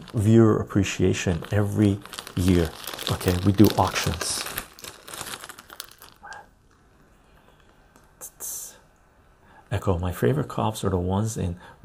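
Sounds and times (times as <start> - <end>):
trading card pack foil crinkling: 0.0 - 6.4
speech: 0.1 - 4.4, 9.8 - 11.8
thin trading card pack wrapper ripping: 1.0 - 6.8.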